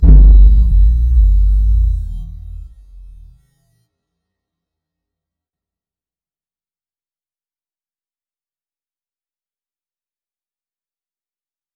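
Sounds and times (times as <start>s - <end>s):
boom: 0.0s - 3.3s.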